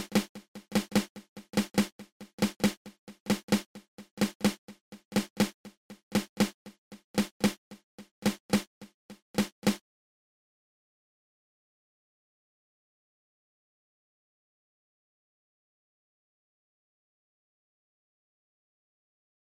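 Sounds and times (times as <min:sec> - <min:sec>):
pataflafla drum rudiment played open and closed: 0:00.0 - 0:09.8.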